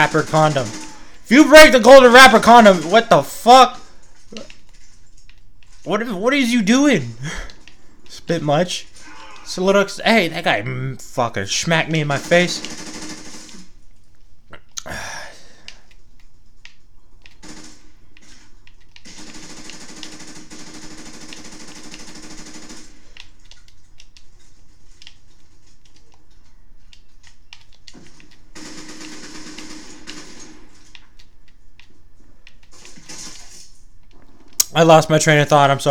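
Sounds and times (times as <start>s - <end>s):
speech: 0.0s - 4.5s, 5.8s - 7.5s, 8.3s - 8.9s, 9.5s - 12.9s, 14.8s - 15.2s, 34.8s - 35.9s
Call of Duty video game machine gun fire: 0.0s - 5.0s, 5.7s - 13.9s, 17.4s - 23.4s, 28.0s - 31.1s, 32.8s - 34.5s.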